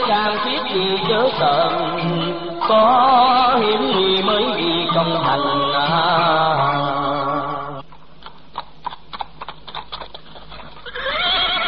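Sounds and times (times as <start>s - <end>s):
speech: 0.0s - 6.7s
white horse hooves clopping and stamping while balking: 7.9s - 10.8s
white horse neighing: 10.8s - 11.6s.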